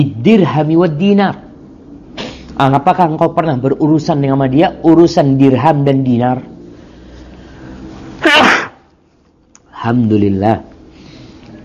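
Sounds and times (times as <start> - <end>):
speech: 0.0 - 1.4, 2.6 - 6.5, 9.8 - 10.7
low hum: 0.0 - 11.6
person sneezing: 2.2 - 2.5, 8.2 - 8.8.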